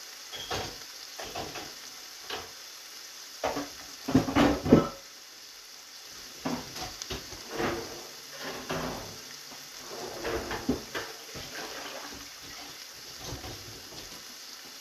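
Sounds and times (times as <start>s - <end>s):
eggs and bell peppers frying in a pan: 0.0s - 14.8s
stirring scraping and clattering: 6.5s - 9.2s, 9.8s - 14.1s.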